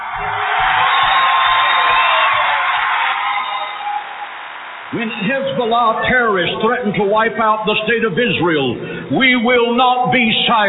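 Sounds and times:
people whooping: 0:00.0 - 0:05.4
crowd cheering at rally: 0:00.0 - 0:06.2
speech: 0:04.9 - 0:10.6.

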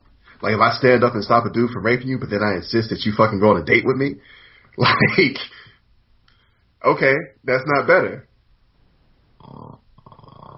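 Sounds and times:
speech: 0:00.4 - 0:05.6, 0:06.8 - 0:08.3, 0:09.4 - 0:09.8
pet snoring: 0:09.4 - 0:10.5.

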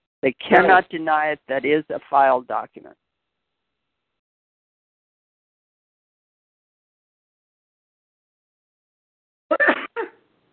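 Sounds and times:
speech: 0:00.2 - 0:03.0, 0:09.5 - 0:10.1
sneeze: 0:09.5 - 0:10.2.

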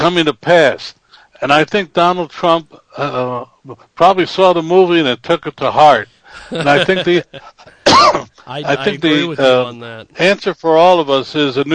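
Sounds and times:
speech: 0:00.0 - 0:11.7
laughter: 0:06.3 - 0:07.8, 0:08.5 - 0:09.8
person coughing: 0:06.6 - 0:09.3.

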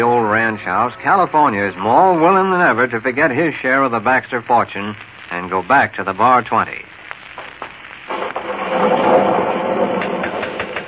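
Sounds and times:
speech: 0:00.0 - 0:06.9
thunder: 0:08.1 - 0:10.8.

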